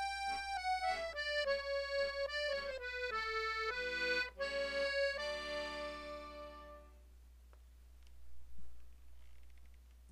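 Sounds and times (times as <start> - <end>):
country waltz music: 0.0 - 7.0.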